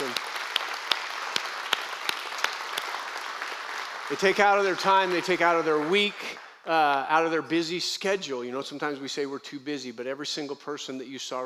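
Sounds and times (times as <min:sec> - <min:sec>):
applause at New Creation Church: 0:00.0 - 0:06.7
speech: 0:04.1 - 0:11.4.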